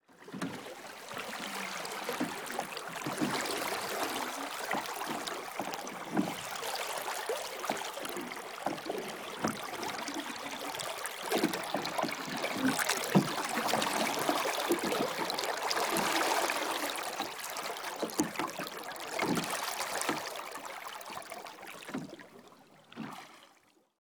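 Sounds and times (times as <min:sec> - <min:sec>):
lake water: 0:00.0 - 0:24.0.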